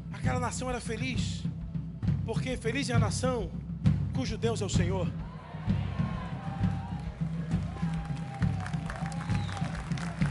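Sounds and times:
speech: 0.3s - 1.5s, 2.3s - 3.6s, 4.2s - 5.8s
crowd clapping: 6.3s - 10.3s.

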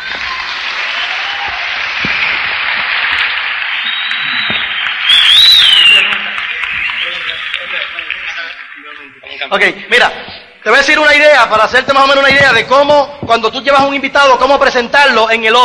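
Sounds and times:
audience applause: 0.0s - 10.1s
speech: 9.5s - 15.6s.

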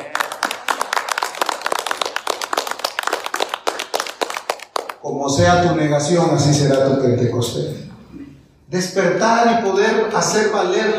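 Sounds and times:
audience applauding: 0.0s - 5.0s
speech: 5.0s - 7.8s, 8.7s - 10.9s.

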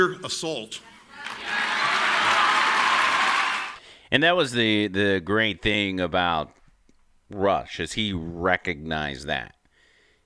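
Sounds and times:
speech: 0.0s - 1.4s, 4.1s - 6.6s, 7.3s - 9.6s
audience applause: 1.2s - 3.8s.

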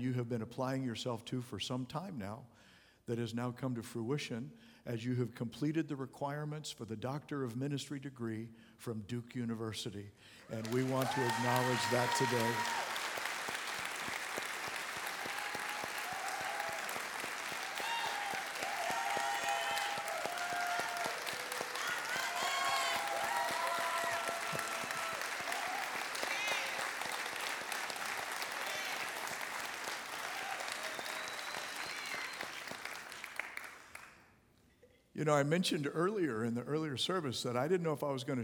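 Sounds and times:
speech: 0.0s - 12.8s, 35.3s - 38.4s
audience standing and clapping: 10.5s - 34.3s.

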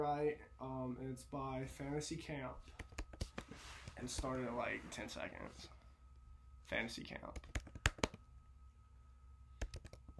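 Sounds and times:
speech: 0.0s - 5.8s, 6.7s - 7.6s
low steady hum: 0.0s - 10.1s
typing on a computer keyboard: 7.4s - 8.2s, 9.6s - 10.1s.

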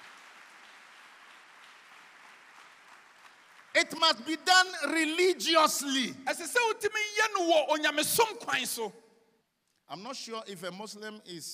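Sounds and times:
crowd clapping: 0.0s - 4.5s
speech: 3.8s - 9.0s, 9.9s - 11.5s.

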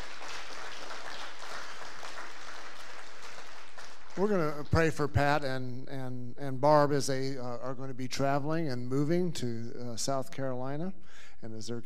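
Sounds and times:
audience applause: 0.0s - 4.8s
speech: 4.2s - 11.8s.

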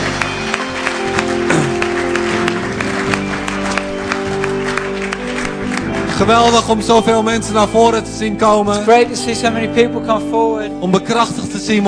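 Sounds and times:
warm applause from audience: 0.0s - 7.3s
speech: 6.2s - 11.8s.

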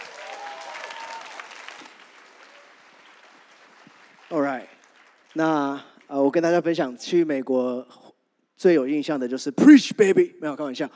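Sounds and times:
audience applause: 0.0s - 5.8s
speech: 5.4s - 8.0s, 8.6s - 10.9s.

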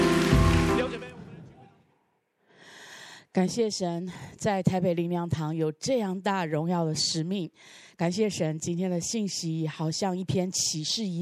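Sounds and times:
audience applause: 0.0s - 1.4s
speech: 3.4s - 11.1s.

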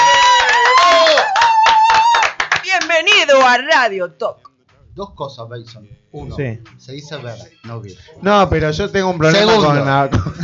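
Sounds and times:
applause: 0.0s - 3.7s
speech: 3.5s - 10.4s
laughter: 10.0s - 10.4s.

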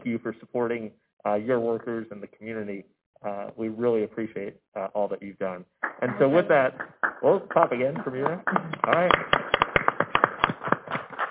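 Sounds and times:
speech: 0.0s - 9.4s
applause: 5.8s - 11.3s.

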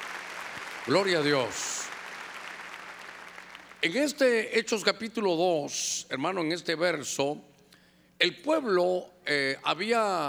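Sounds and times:
audience clapping loudly: 0.0s - 3.8s
speech: 0.8s - 1.7s, 3.8s - 7.5s, 8.2s - 10.2s.

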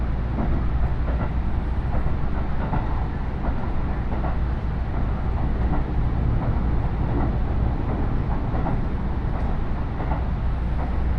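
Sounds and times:
313 series two-car train on the Iida Line between Tatsuno and Ina-shi rumbling: 0.0s - 11.1s.

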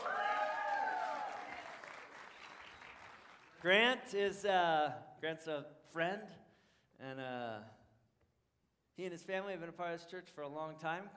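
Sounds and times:
audience cheering and applause: 0.0s - 3.5s
speech: 3.6s - 6.4s, 7.0s - 7.8s, 9.0s - 11.1s.

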